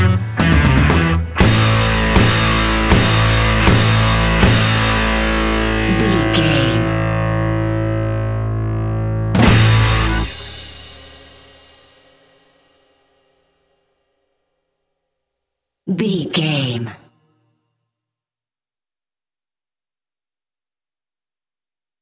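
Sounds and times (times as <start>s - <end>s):
noise music mix: 0.0s - 11.8s.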